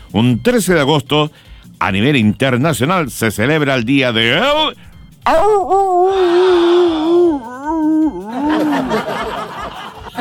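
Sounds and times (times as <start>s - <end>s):
speech: 0.1s - 7.5s, 8.1s - 9.4s
wolf howling: 5.3s - 8.9s
laughter: 8.1s - 10.1s.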